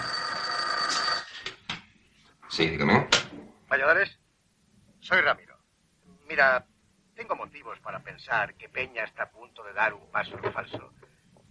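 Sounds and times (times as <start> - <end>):
telephone ringing: 0.0 - 1.6
speech: 2.6 - 4.2, 5.1 - 5.5, 6.3 - 11.0.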